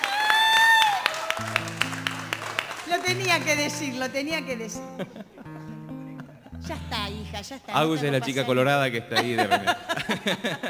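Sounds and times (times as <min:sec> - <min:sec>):
audience clapping: 0:00.0 - 0:03.8
speech: 0:03.1 - 0:05.7, 0:06.7 - 0:10.6
laughter: 0:04.8 - 0:06.8, 0:07.8 - 0:10.6.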